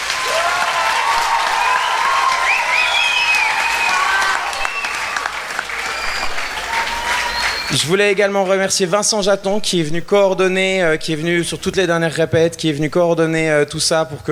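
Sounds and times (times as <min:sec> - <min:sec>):
whistles and cheers: 0:00.0 - 0:08.2
audience applauding: 0:00.0 - 0:08.8
speech: 0:07.7 - 0:14.3.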